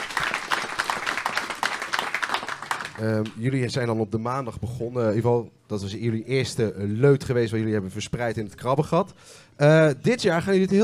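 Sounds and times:
applause: 0:00.0 - 0:03.4
speech: 0:03.0 - 0:10.8.

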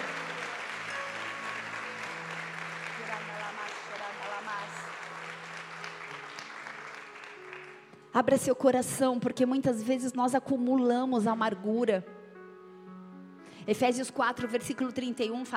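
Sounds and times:
audience applauding: 0:00.0 - 0:08.1
speech: 0:08.2 - 0:12.2, 0:13.6 - 0:15.5.

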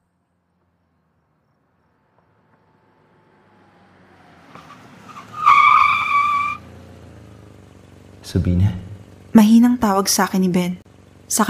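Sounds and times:
taxi tires or brakes squealing while stopping: 0:00.9 - 0:08.3
speech: 0:08.3 - 0:11.4.

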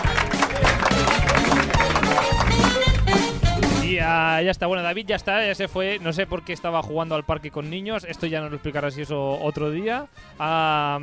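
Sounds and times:
applause sound effect: 0:00.0 - 0:03.8
speech: 0:04.1 - 0:11.0.

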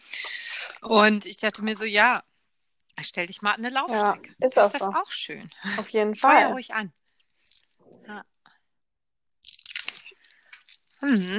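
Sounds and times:
speech: 0:00.8 - 0:02.3, 0:03.0 - 0:07.0, 0:07.9 - 0:08.3, 0:11.0 - 0:11.3
chewing a crunchy chocolate bar: 0:09.4 - 0:11.3.

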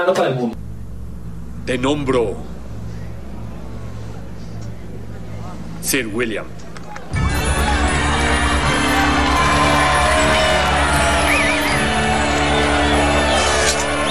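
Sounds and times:
speech: 0:00.0 - 0:00.6, 0:01.6 - 0:02.5, 0:05.8 - 0:07.2
audience applause: 0:06.7 - 0:14.0.

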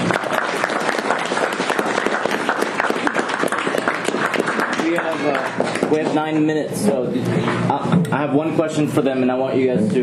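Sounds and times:
audience clapping: 0:00.0 - 0:06.6
speech: 0:05.9 - 0:10.0.

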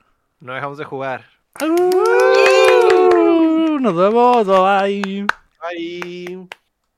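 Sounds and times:
speech: 0:00.4 - 0:02.5, 0:03.8 - 0:06.6
applause: 0:01.5 - 0:06.7
cheering: 0:01.6 - 0:04.8.

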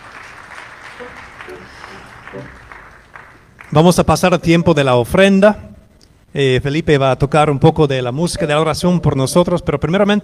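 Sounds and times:
audience applause: 0:00.0 - 0:03.8
speech: 0:01.0 - 0:02.7, 0:03.7 - 0:05.7, 0:06.3 - 0:10.2.

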